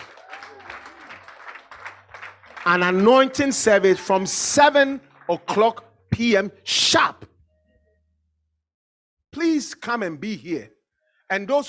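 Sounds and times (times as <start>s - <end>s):
church congregation applauding: 0.0s - 5.8s
speech: 2.6s - 7.3s, 9.4s - 11.6s.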